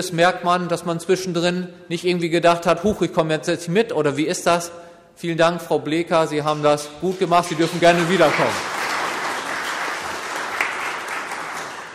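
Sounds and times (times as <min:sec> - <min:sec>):
speech: 0:00.0 - 0:08.7
crowd applause: 0:07.2 - 0:11.9.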